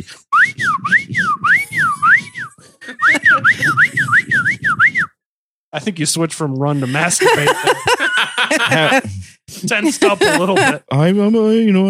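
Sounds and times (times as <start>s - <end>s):
slide whistle: 0.4s - 5.2s
laughter: 1.8s - 4.4s, 6.6s - 11.0s
speech: 5.8s - 11.8s.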